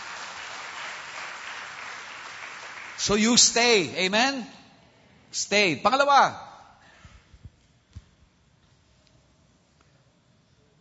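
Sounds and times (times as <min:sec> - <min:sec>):
audience applause at a church service: 0:00.0 - 0:03.8
speech: 0:03.0 - 0:04.6, 0:05.3 - 0:06.5.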